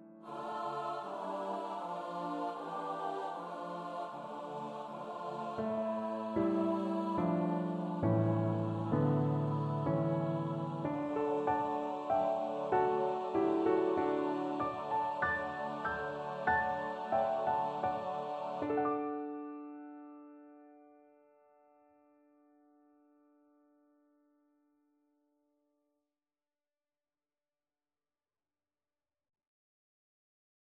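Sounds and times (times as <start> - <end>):
SATB choir singing: 0.2 - 19.4.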